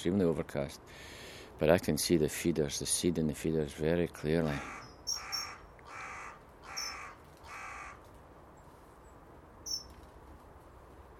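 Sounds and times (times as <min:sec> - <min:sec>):
speech: 0:00.0 - 0:05.2
big crow calling from a tree: 0:04.2 - 0:08.1, 0:09.7 - 0:09.9.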